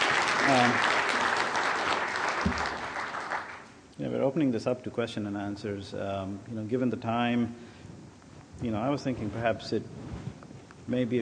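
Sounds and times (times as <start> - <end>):
round of applause for the speakers: 0.0 - 3.7
speech: 4.3 - 7.7, 8.6 - 10.0, 10.9 - 11.1.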